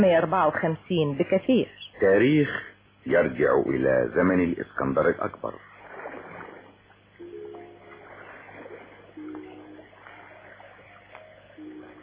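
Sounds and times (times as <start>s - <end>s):
speech: 0.0s - 5.7s
Mediterranean sea water washing on the shore: 5.5s - 12.0s.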